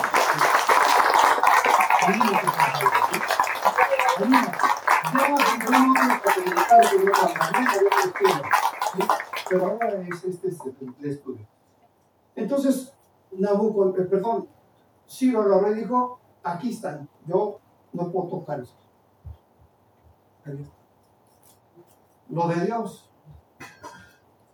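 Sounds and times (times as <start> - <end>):
crowd applauding: 0.0 - 10.4
people shouting and cheering: 1.6 - 5.9
speech: 2.1 - 11.6, 12.4 - 18.8, 20.5 - 20.8, 22.3 - 23.1.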